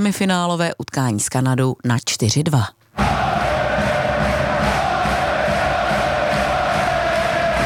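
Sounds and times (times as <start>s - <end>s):
speech: 0.0s - 3.3s
large crowd of home fans chanting and singing in unison: 3.0s - 7.6s
steady rhythmic clapping by home fans: 3.0s - 7.6s.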